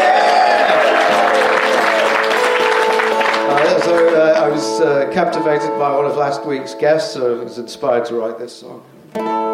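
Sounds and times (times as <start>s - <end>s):
audience applause welcoming a comic songwriter to the stage: 0.0s - 4.7s
speech: 4.8s - 9.4s.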